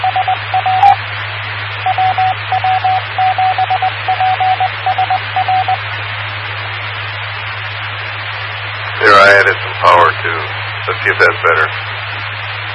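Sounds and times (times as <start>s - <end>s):
radio beep tone: 0.0s - 1.0s, 1.9s - 5.8s
low hum: 0.0s - 12.7s
static hiss: 0.0s - 12.7s.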